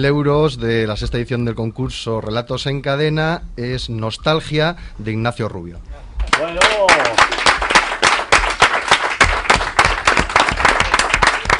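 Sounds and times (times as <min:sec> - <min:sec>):
speech: 0:00.0 - 0:06.6
applause for contest winner: 0:06.3 - 0:11.5.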